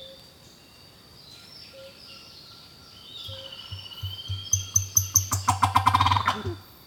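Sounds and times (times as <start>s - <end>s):
turkey gobbling: 3.3s - 6.6s.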